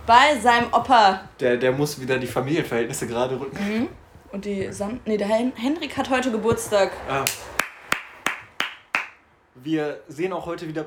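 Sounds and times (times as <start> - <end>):
speech: 0.1 - 7.6, 9.6 - 10.8
crisp hand claps: 7.2 - 9.2.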